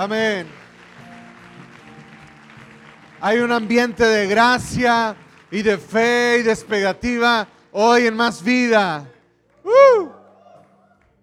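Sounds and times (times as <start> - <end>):
speech: 0.0 - 0.6, 3.2 - 9.1
audience applause: 0.0 - 6.8.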